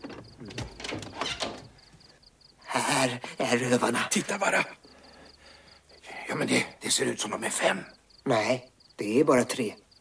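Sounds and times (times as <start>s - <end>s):
door creaking and grinding open: 0.0s - 2.2s
speech: 2.8s - 4.8s, 6.3s - 9.8s.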